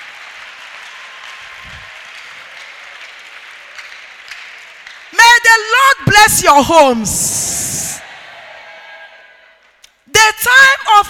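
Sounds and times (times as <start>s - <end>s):
crowd clapping: 0.0s - 5.5s, 8.0s - 10.0s
speech: 5.1s - 7.6s.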